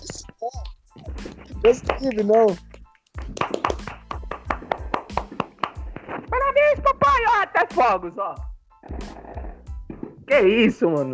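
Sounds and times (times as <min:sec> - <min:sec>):
hands clapping in celebration: 0:00.0 - 0:06.3
speech: 0:01.6 - 0:02.7, 0:07.6 - 0:08.5, 0:10.3 - 0:11.1.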